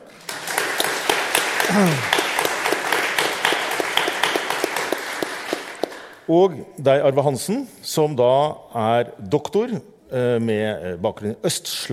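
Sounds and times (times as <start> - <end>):
audience applause: 0.0 - 6.2
speech: 1.7 - 2.1, 6.3 - 11.9.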